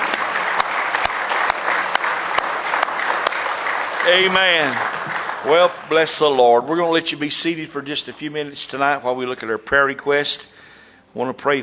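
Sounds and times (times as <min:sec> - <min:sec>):
audience hand clapping: 0:00.0 - 0:07.2
speech: 0:04.1 - 0:11.6.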